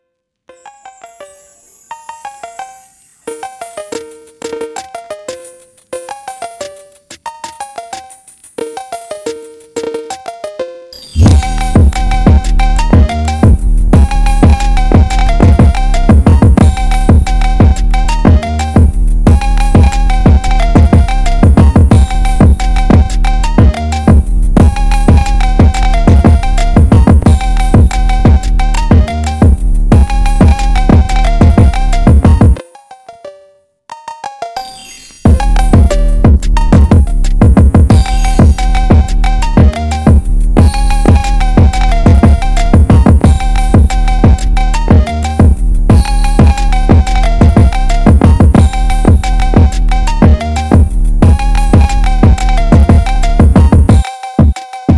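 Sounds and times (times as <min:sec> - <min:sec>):
drift phonk New Year remix: 0:11.0 - 0:32.6, 0:35.2 - 0:54.9.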